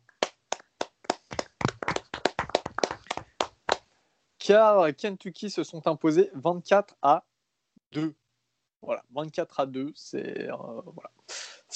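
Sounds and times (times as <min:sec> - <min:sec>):
hand claps: 0:00.0 - 0:03.9
speech: 0:04.5 - 0:07.3, 0:07.9 - 0:08.2, 0:08.8 - 0:11.5.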